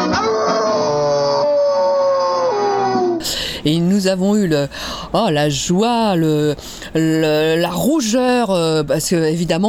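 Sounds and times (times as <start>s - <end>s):
wolf howling: 0.1s - 3.2s
speech: 3.7s - 9.6s.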